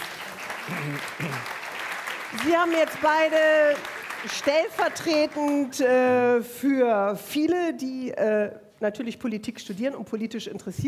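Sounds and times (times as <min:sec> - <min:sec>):
audience applause: 0:00.0 - 0:05.6
speech: 0:00.7 - 0:01.6, 0:02.3 - 0:10.8.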